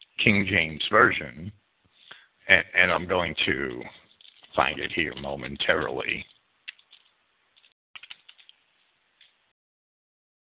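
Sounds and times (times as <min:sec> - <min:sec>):
speech: 0:00.2 - 0:01.6, 0:02.5 - 0:04.0, 0:04.6 - 0:06.3
typing on a computer keyboard: 0:08.0 - 0:08.6.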